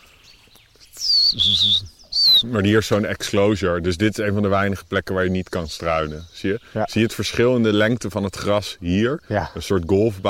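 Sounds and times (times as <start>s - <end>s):
common redstart singing: 0.0s - 10.2s
speech: 1.3s - 10.2s.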